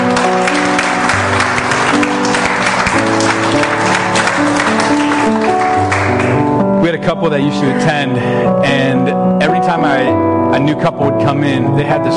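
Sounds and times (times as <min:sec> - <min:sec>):
audience round of applause: 0:00.0 - 0:06.5
held keyboard or organ chords: 0:00.0 - 0:12.1
speech: 0:07.1 - 0:12.1.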